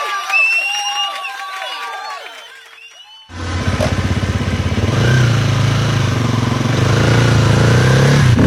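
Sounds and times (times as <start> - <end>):
high chirping whistle-like tones: 0.1 - 3.4
motorcycle engine: 3.3 - 8.4.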